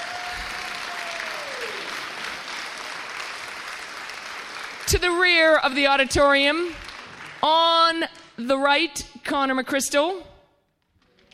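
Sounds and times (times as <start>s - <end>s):
audience applause: 0.0s - 5.2s, 6.8s - 7.4s
speech: 5.0s - 10.3s.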